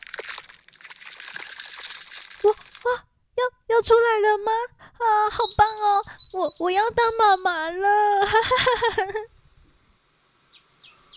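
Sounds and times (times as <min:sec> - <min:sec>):
duck eggshells cracking open: 0:00.0 - 0:03.0
speech: 0:03.8 - 0:09.3.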